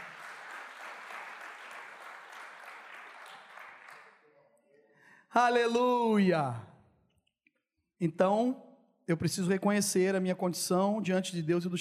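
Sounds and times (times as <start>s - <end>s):
audience applause: 0.0s - 4.2s
speech: 5.3s - 6.7s, 8.0s - 11.8s.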